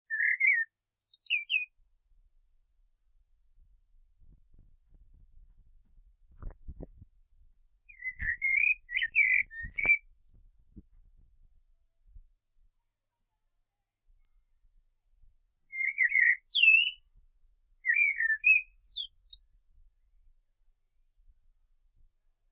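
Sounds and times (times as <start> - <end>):
common blackbird song: 0.1 - 1.7, 7.9 - 10.4, 15.7 - 17.0, 17.8 - 19.6.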